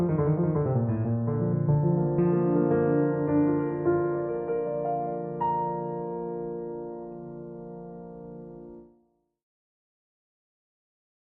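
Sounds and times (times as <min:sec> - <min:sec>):
classical prelude in B flat major: 0:00.0 - 0:09.0.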